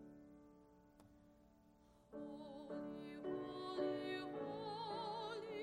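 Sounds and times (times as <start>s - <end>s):
opera singer singing a hymn: 2.1s - 5.6s.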